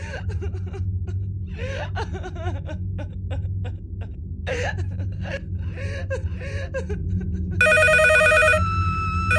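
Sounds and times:
person sobbing softly: 0:00.0 - 0:08.6
telephone bell ringing loudly: 0:07.6 - 0:08.6.

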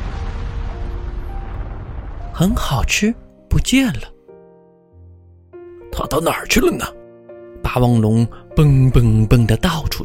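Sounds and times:
volcano erupting: 0:00.0 - 0:03.2
speech: 0:02.4 - 0:04.1, 0:06.0 - 0:07.0, 0:07.7 - 0:10.0.

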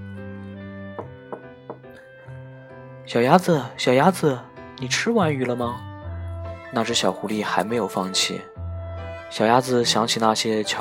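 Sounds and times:
sharp wooden knocks on a door: 0:01.0 - 0:01.9
speech: 0:03.1 - 0:05.9, 0:06.7 - 0:08.5, 0:09.3 - 0:10.7.

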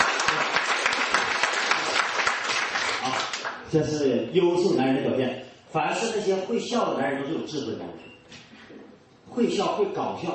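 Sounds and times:
audience applause: 0:00.0 - 0:03.6
speech: 0:03.7 - 0:08.1, 0:09.3 - 0:10.3.

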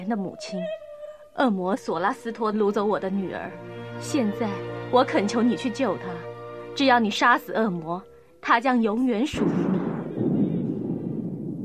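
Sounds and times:
speech: 0:00.1 - 0:00.8, 0:01.4 - 0:09.7
rolling thunder sound effect with lightning: 0:09.3 - 0:11.6.

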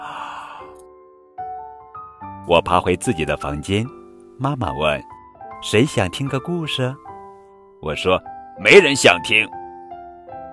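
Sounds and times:
small yawn: 0:00.0 - 0:00.8
speech: 0:02.4 - 0:07.0, 0:07.8 - 0:09.6.

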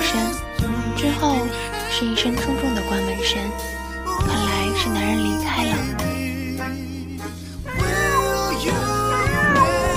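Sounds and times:
speech: 0:01.0 - 0:06.9
small black cat meowing: 0:07.8 - 0:09.9.

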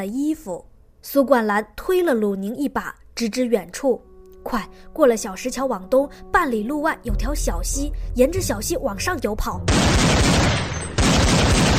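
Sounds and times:
speech: 0:00.0 - 0:10.6
dense continuous gunfire: 0:09.7 - 0:11.7.

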